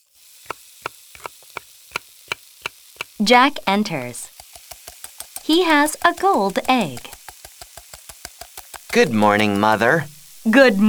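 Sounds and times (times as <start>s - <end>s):
sharp bright taps of food being cooked in a kitchen: 0.5s - 3.2s, 4.3s - 10.1s
speech: 3.2s - 4.3s, 5.5s - 7.1s, 9.0s - 10.8s.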